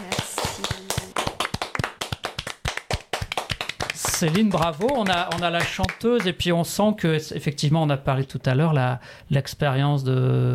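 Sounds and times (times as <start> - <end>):
audience clapping: 0.0 - 6.5
speech: 4.2 - 10.5.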